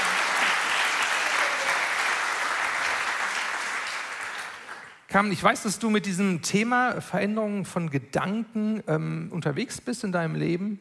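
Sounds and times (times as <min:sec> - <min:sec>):
audience applause: 0:00.0 - 0:05.1
speech: 0:05.1 - 0:10.8.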